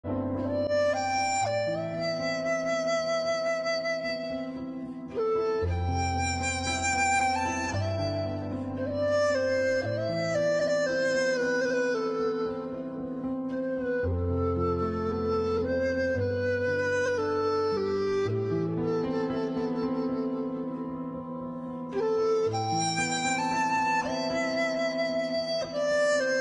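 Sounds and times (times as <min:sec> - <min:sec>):
gentle deep instrumental music: 0:00.0 - 0:26.3.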